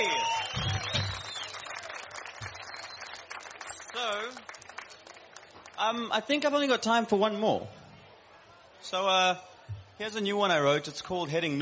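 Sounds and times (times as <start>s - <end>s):
audience clapping: 0.0s - 6.0s
speech: 4.0s - 4.5s, 5.8s - 7.8s, 8.8s - 11.5s.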